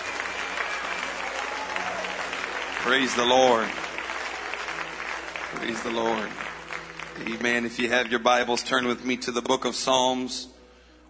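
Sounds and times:
audience applause: 0.0s - 8.4s
speech: 2.8s - 3.8s, 5.6s - 6.4s, 7.2s - 10.5s.

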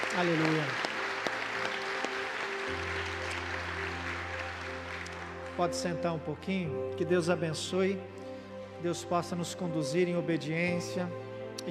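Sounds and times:
audience applause: 0.0s - 6.0s
speech: 0.2s - 0.9s, 5.6s - 8.2s, 8.8s - 11.6s.

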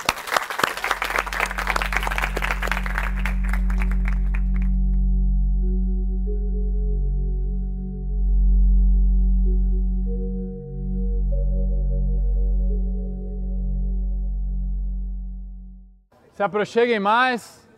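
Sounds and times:
audience applause: 0.0s - 4.9s
low droning hum: 0.8s - 16.1s
speech: 16.4s - 17.6s.

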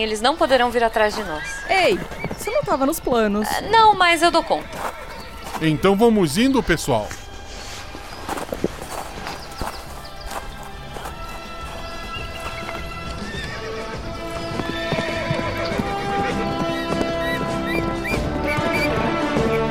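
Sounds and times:
speech: 0.0s - 4.9s, 5.6s - 7.2s
hooves clip-clopping: 0.0s - 19.6s
horses whinnying: 1.0s - 7.0s, 10.8s - 19.6s.

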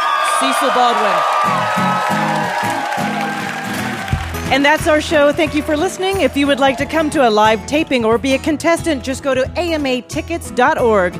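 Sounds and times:
audience applause: 0.0s - 7.3s
speech: 0.4s - 3.1s, 4.5s - 11.1s.

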